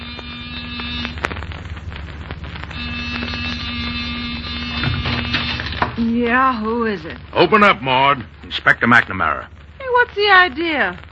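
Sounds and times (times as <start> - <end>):
door buzzer: 0.0 - 1.2, 2.7 - 6.0
constant hiss like falling rain: 0.0 - 11.1
speech: 6.0 - 11.1.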